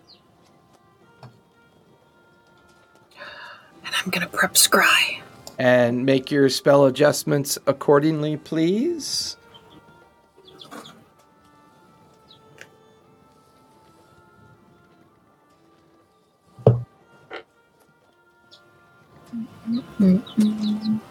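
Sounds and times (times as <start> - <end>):
speech: 4.0 - 9.4
chickens peeping: 9.2 - 11.1, 19.3 - 21.0
sharp knock: 16.6 - 16.9.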